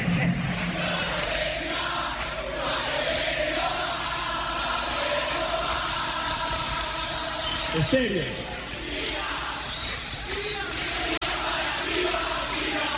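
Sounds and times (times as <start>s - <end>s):
Argentine rock concert audience of the 1970s roaring: 0.0s - 12.9s
speech: 7.8s - 8.6s.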